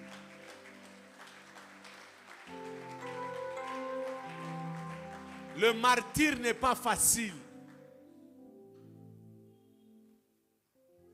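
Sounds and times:
church congregation clapping during a worship service: 0.0s - 8.1s
speech: 5.6s - 7.4s.

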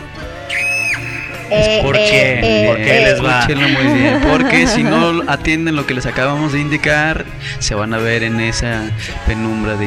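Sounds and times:
shrill horror scream sound effect: 0.4s - 1.5s
laughter: 1.4s - 5.4s
speech: 1.5s - 9.8s.

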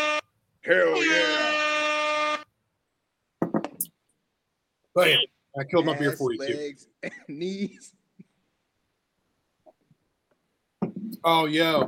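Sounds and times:
air horn sound effect blast: 0.0s - 0.3s, 1.2s - 2.5s
speech: 0.7s - 1.4s, 5.0s - 8.0s, 11.2s - 11.8s.

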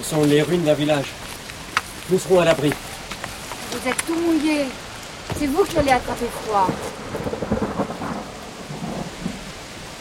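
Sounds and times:
speech: 0.0s - 1.3s, 2.1s - 2.9s, 3.7s - 7.4s
constant hiss of heavy rain: 0.0s - 9.9s
low rolling thunder of a violent thunderstorm: 5.2s - 9.9s.

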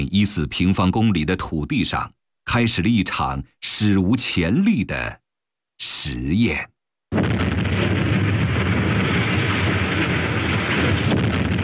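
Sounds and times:
speech: 0.0s - 5.2s, 5.8s - 7.9s
explosions blasting a mountainside for the Shekou Industrial Zone in Shenzhen, China: 7.1s - 11.6s.

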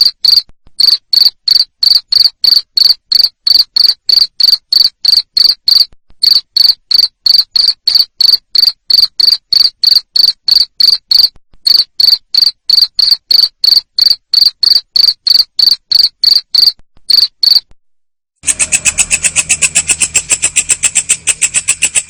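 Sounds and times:
cricket chirping: 0.0s - 17.7s, 18.4s - 22.0s
harsh buzzing burst: 18.4s - 22.0s.

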